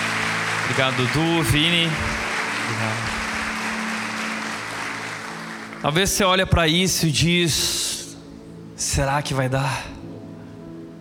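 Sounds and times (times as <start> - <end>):
crowd clapping: 0.0 - 6.5
speech: 0.7 - 3.2, 5.8 - 7.8, 8.8 - 10.1.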